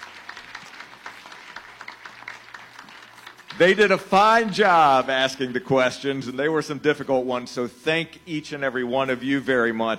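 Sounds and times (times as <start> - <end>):
audience applause: 0.0 - 5.6
speech: 3.6 - 9.9.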